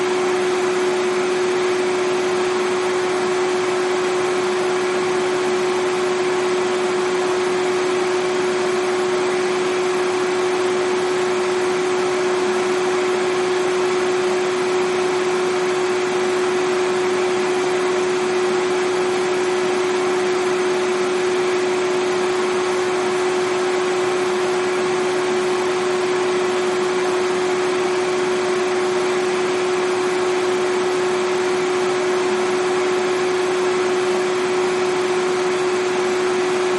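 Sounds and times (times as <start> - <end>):
vacuum cleaner running: 0.0 - 36.7.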